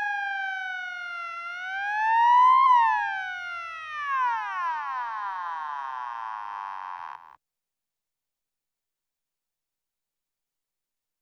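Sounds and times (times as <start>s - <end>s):
emergency siren wail changing to yelp: 0.0s - 7.3s.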